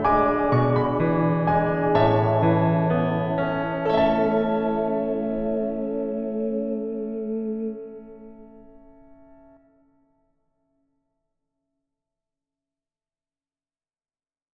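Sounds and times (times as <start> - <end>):
piano part: 0.0 - 9.7.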